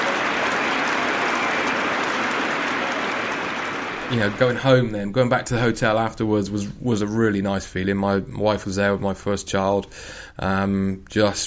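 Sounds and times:
cricket crowd applauding standing ovation: 0:00.0 - 0:04.9
speech: 0:04.1 - 0:11.4.

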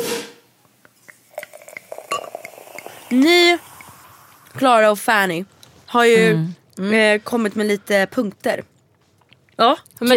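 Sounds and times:
person gulping a drink from a glass: 0:01.1 - 0:04.6
speech: 0:03.1 - 0:03.7, 0:04.6 - 0:08.7, 0:09.6 - 0:10.1.

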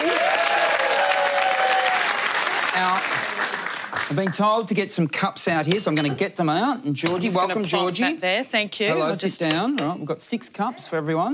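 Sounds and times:
audience applause welcoming a guest onto a show: 0:00.0 - 0:04.4
speech: 0:04.1 - 0:11.3.

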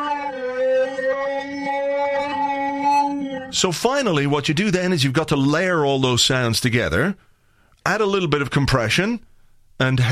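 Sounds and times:
reversed processed howl-like harmonic drone: 0:00.0 - 0:03.6
speech: 0:03.5 - 0:10.1.

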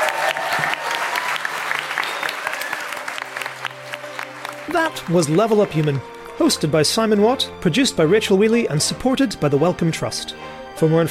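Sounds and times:
applause: 0:00.0 - 0:06.3
speech: 0:04.7 - 0:11.0.

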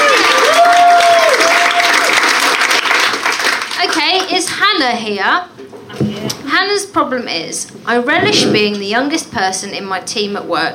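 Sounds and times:
high whoop: 0:00.0 - 0:02.0
audience applause: 0:00.0 - 0:03.8
speech: 0:04.8 - 0:10.7.

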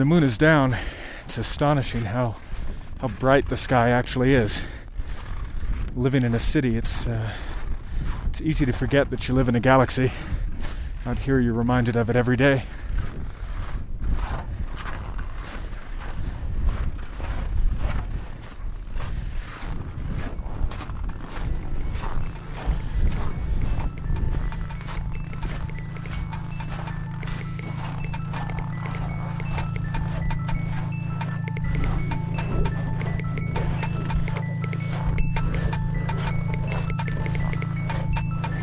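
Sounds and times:
speech: 0:00.0 - 0:04.8, 0:06.0 - 0:10.4, 0:11.0 - 0:13.1
boots crunching through the snow at the South Pole: 0:00.0 - 0:09.0, 0:09.6 - 0:38.6.

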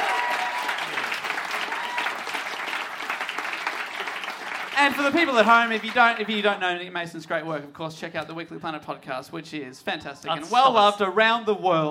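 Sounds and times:
audience applause: 0:00.0 - 0:06.6
speech: 0:04.8 - 0:11.8.

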